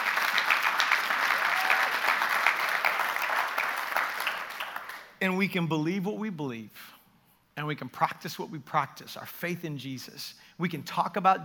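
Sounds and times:
audience clapping: 0:00.0 - 0:05.2
speech: 0:05.2 - 0:06.9, 0:07.6 - 0:11.4.

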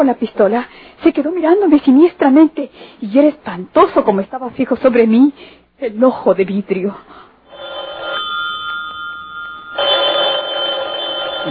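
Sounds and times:
speech: 0:00.0 - 0:07.2
telephone ringing with an electronic trill: 0:07.5 - 0:11.4.

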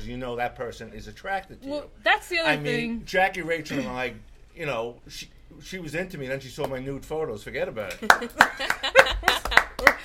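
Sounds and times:
speech: 0:00.0 - 0:10.0
hand claps: 0:07.9 - 0:10.0.

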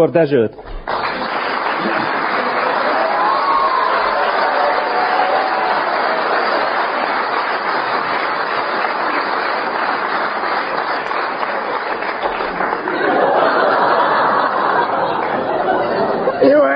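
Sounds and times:
speech: 0:00.0 - 0:01.0
audience applause: 0:00.6 - 0:16.3
laughter: 0:01.1 - 0:07.1, 0:11.4 - 0:16.7
faint cheer: 0:01.9 - 0:07.4.

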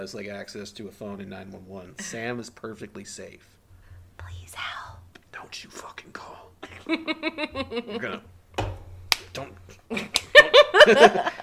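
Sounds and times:
speech: 0:00.0 - 0:03.6, 0:05.4 - 0:08.7, 0:09.4 - 0:11.4
laughter: 0:06.7 - 0:08.2, 0:09.9 - 0:11.4
hand slapping own arm: 0:08.6 - 0:09.5.

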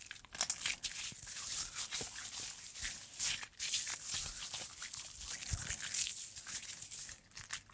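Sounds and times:
lathered hands rubbing together while hand washing: 0:00.5 - 0:07.6.

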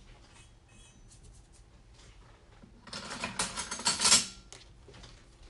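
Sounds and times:
utensils and bowls clicking while making banana bread: 0:02.9 - 0:04.7.

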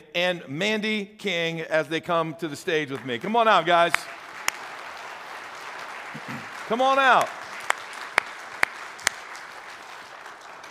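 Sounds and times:
speech: 0:00.2 - 0:04.2, 0:06.2 - 0:07.4
audience applause: 0:03.0 - 0:10.6.

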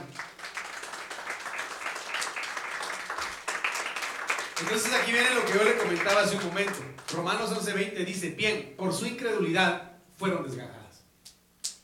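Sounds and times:
audience clapping hands: 0:00.0 - 0:07.6
speech: 0:04.6 - 0:10.8.

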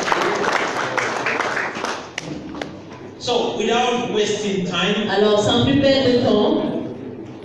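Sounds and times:
audience applause: 0:00.0 - 0:02.6
speech: 0:03.3 - 0:06.7.

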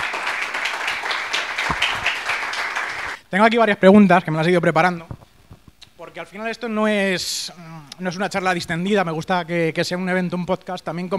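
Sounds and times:
audience applause: 0:00.0 - 0:03.2
speech: 0:03.3 - 0:05.2, 0:06.0 - 0:11.1.

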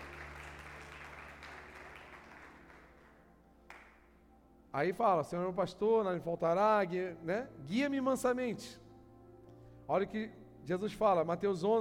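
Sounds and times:
audience applause: 0:00.0 - 0:03.9
speech: 0:04.7 - 0:08.8, 0:09.9 - 0:11.8.

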